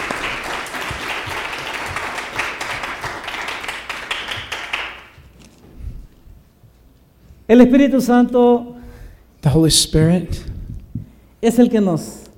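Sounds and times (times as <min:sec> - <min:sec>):
audience applauding: 0:00.0 - 0:05.4
speech: 0:07.5 - 0:08.8, 0:09.5 - 0:10.5, 0:11.4 - 0:12.2.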